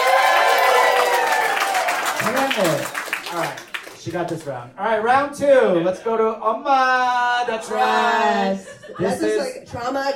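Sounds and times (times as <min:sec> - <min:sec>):
crowd clapping: 0:00.0 - 0:04.6
speech: 0:03.3 - 0:10.1.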